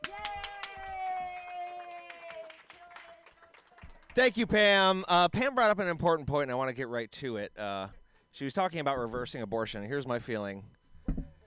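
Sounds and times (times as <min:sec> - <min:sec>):
audience clapping for next comedian: 0:00.0 - 0:04.6
speech: 0:04.2 - 0:10.8.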